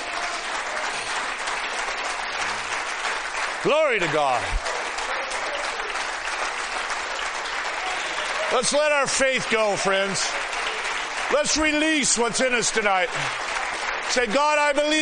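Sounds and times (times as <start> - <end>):
audience clapping: 0.0 - 15.0
speech: 3.6 - 4.7, 8.5 - 10.6, 11.3 - 13.4, 14.1 - 15.0.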